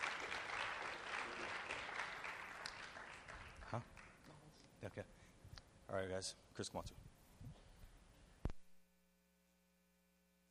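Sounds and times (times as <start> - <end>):
round of applause: 0.0 - 4.3
speech: 3.7 - 4.0, 4.8 - 5.2, 5.9 - 7.0.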